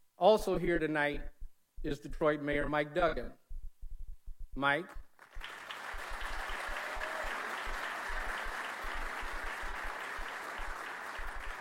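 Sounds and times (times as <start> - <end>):
speech: 0.2 - 3.4, 4.6 - 5.0
crowd applauding: 5.2 - 11.5.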